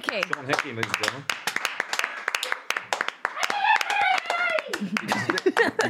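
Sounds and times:
live audience clapping: 0:00.0 - 0:05.8
speech: 0:00.1 - 0:01.5, 0:04.8 - 0:05.8
voices calling and whooping: 0:03.4 - 0:04.9
laughter: 0:04.6 - 0:05.8.

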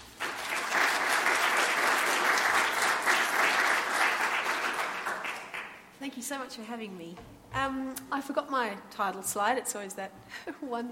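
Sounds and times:
audience applause welcoming a speaker to a talk on food and farming: 0:00.0 - 0:05.8
speech: 0:06.1 - 0:10.9.

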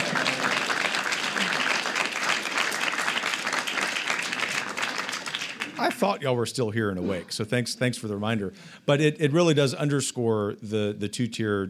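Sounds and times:
audience clapping: 0:00.0 - 0:06.2
speech: 0:05.8 - 0:11.6.

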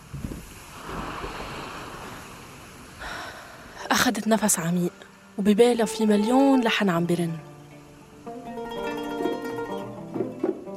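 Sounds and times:
sea waves crashing against the rocks below the Raouché corniche in Beirut: 0:00.0 - 0:03.9
wind blowing: 0:00.0 - 0:10.7
speech: 0:04.0 - 0:07.5.

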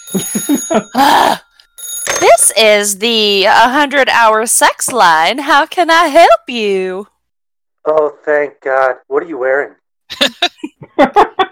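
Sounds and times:
telephone ringing: 0:00.0 - 0:03.6
laughter: 0:00.1 - 0:01.4, 0:10.1 - 0:11.5
speech: 0:00.3 - 0:01.4, 0:02.2 - 0:07.1, 0:07.8 - 0:11.5.

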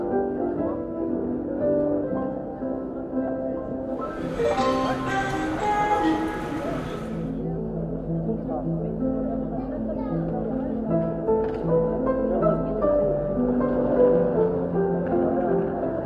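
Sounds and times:
faint voices murmuring: 0:00.0 - 0:16.0
station piano playing: 0:00.0 - 0:16.0
bright hissy layer: 0:04.0 - 0:07.3.

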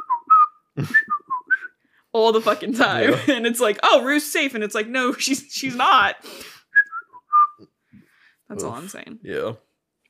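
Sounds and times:
person whistling a four-note tune imitating a bird call: 0:00.0 - 0:01.8, 0:06.7 - 0:07.7
speech: 0:00.8 - 0:01.1, 0:02.1 - 0:06.5, 0:08.6 - 0:09.7
laughter: 0:00.8 - 0:01.2, 0:02.4 - 0:03.5.

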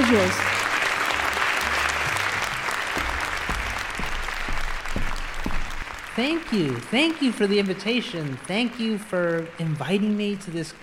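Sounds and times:
audience applause: 0:00.0 - 0:10.8
speech: 0:00.1 - 0:00.5, 0:06.2 - 0:10.8.

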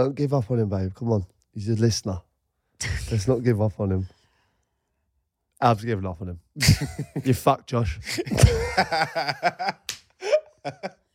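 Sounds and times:
speech: 0:00.0 - 0:04.2, 0:05.6 - 0:09.9, 0:10.6 - 0:11.0
laughter: 0:08.3 - 0:11.0
person slapping own leg: 0:09.8 - 0:10.2.

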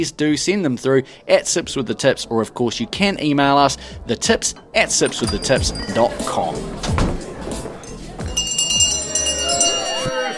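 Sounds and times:
speech: 0:00.0 - 0:07.2
crowd chatter: 0:01.7 - 0:10.3
glasses clinking: 0:04.4 - 0:10.3
last-call bell ringing: 0:04.6 - 0:06.8, 0:07.8 - 0:10.3.

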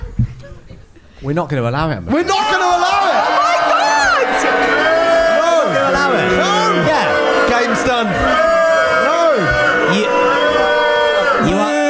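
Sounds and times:
speech: 0:01.2 - 0:02.9, 0:06.0 - 0:08.6
game show audience booing two contestants: 0:02.1 - 0:11.8
game show audience whooping: 0:02.2 - 0:11.8.

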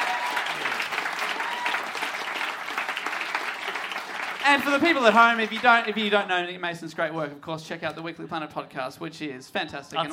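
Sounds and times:
audience applause: 0:00.0 - 0:06.4
speech: 0:04.5 - 0:10.1.

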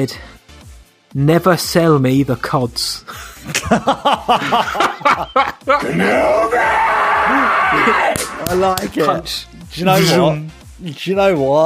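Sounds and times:
speech: 0:00.0 - 0:00.4, 0:01.1 - 0:11.6
laughter: 0:03.1 - 0:06.4
voices imitating a Star Wars cantina crowd screaming: 0:05.0 - 0:08.8.

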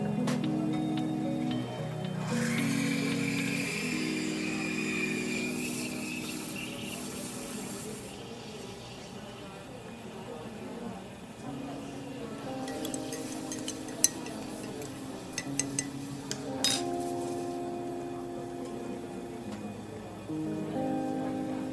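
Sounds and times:
coffee shop murmur of voices: 0:00.0 - 0:21.7
dishes and cups clinking: 0:12.6 - 0:17.0.

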